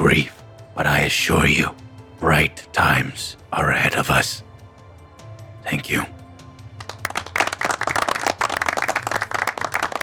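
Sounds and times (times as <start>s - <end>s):
speech: 0.1s - 4.4s, 5.7s - 6.2s
solemn crowd clapping: 6.7s - 10.0s.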